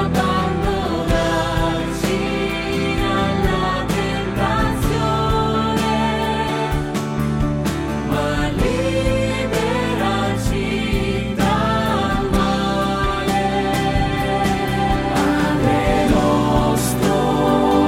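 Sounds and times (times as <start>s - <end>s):
alto and tenor voices singing a prayer in Italian: 0.0s - 7.2s, 7.9s - 17.8s.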